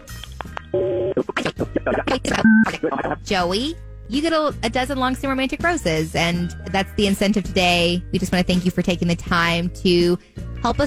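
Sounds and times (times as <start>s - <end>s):
speech: 0.4s - 10.8s
telephone keypad beeps: 2.4s - 2.6s
steady phone tone: 2.4s - 2.7s.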